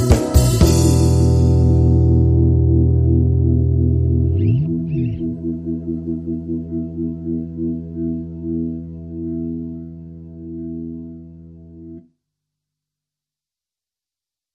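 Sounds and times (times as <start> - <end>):
disco funk guitar: 0.0 - 9.8.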